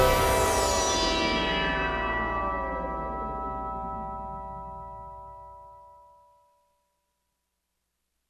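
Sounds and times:
Oberheim OB-8 polyphonic portamento synth comping: 0:00.0 - 0:05.6.

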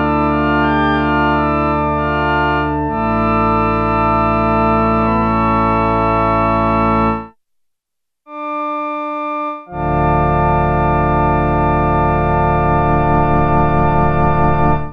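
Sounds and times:
Sequential Circuits Prophet-5 church organ factory patch: 0:00.0 - 0:07.3, 0:08.3 - 0:14.9.

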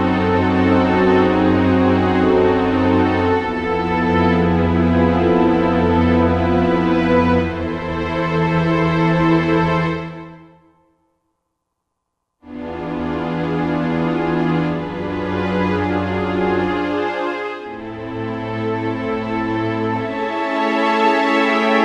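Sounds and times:
orchestral film music on Roland SR-JV80-16 Orchestral II: 0:00.0 - 0:10.6, 0:12.5 - 0:21.8.

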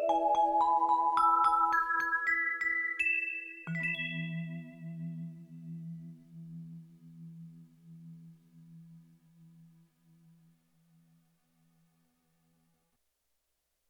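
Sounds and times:
synth vibraphone from Yamaha TX16W sampler: 0:00.0 - 0:05.2.

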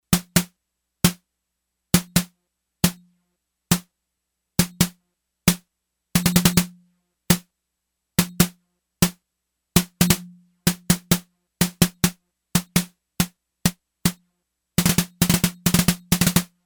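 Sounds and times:
snare drum: 0:00.2 - 0:01.2, 0:02.0 - 0:03.0, 0:04.6 - 0:05.6, 0:06.2 - 0:06.7, 0:08.2 - 0:09.2, 0:09.8 - 0:13.3, 0:14.8 - 0:16.6.

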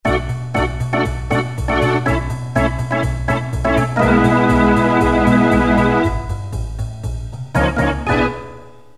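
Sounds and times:
organ: 0:00.0 - 0:06.8, 0:07.5 - 0:08.6.

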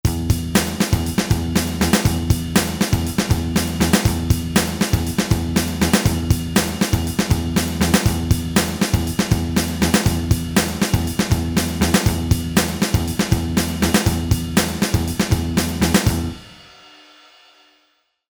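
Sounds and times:
punk music: 0:00.0 - 0:16.7.

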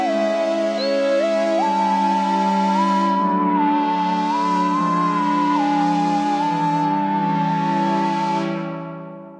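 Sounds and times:
string whistle synthesizer patch: 0:00.0 - 0:09.3.

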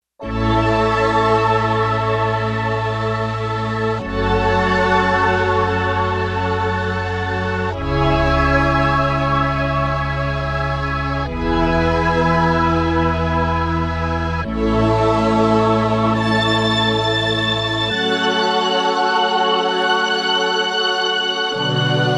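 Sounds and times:
synth chorus: 0:00.2 - 0:22.1.

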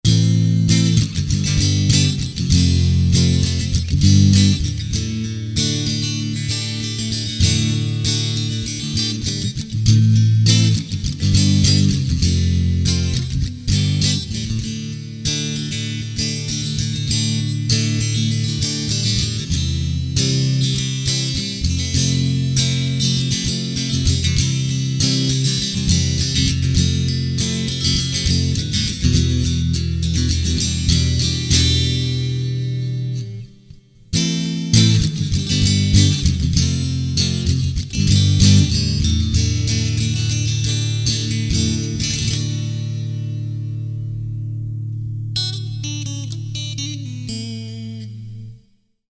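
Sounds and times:
acoustic music: 0:00.0 - 0:48.6.

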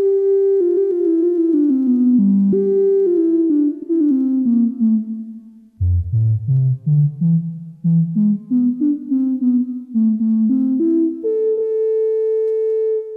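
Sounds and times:
Farfisa Syntorchestra synthesizer: 0:00.0 - 0:12.4
bass flute: 0:04.4 - 0:13.1.

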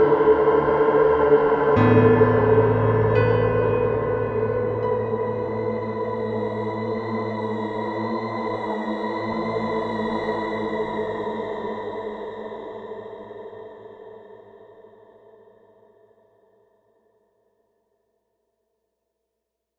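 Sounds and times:
piano: 0:00.0 - 0:13.8.

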